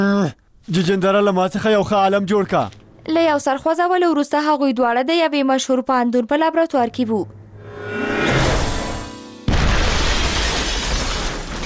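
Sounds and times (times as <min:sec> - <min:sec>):
speech: 0:00.0 - 0:08.1
building noise: 0:07.2 - 0:09.5
explosion in a chemistry laboratory: 0:08.2 - 0:11.6.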